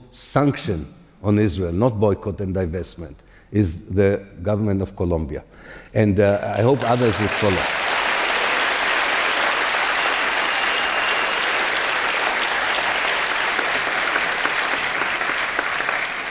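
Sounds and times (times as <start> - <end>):
speech: 0.1 - 7.8
audience applause: 6.3 - 16.2.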